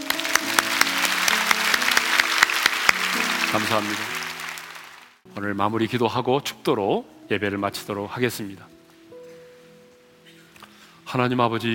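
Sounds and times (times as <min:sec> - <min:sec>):
audience applause: 0:00.0 - 0:05.2
speech: 0:03.5 - 0:04.2, 0:05.4 - 0:08.8, 0:11.1 - 0:11.7.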